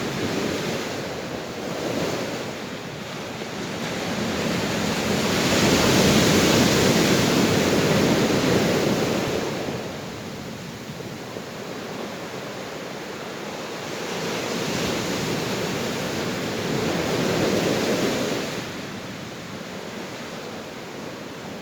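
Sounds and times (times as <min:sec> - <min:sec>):
ocean waves: 0:00.0 - 0:21.6.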